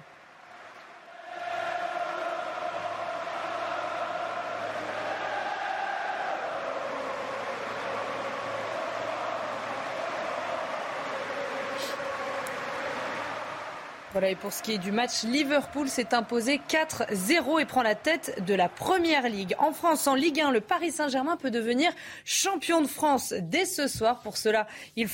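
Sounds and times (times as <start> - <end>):
big stadium crowd applauding: 0.0 - 21.4
sustained chorus of crowd voices: 1.3 - 20.4
speech: 14.2 - 25.1.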